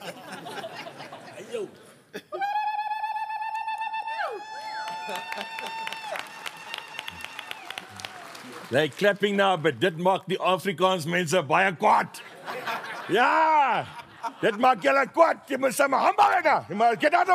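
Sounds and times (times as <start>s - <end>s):
laughter: 0.0s - 2.6s, 12.2s - 15.2s
speech: 1.6s - 2.2s, 8.7s - 12.3s, 13.1s - 17.3s
person ululating: 2.3s - 5.8s.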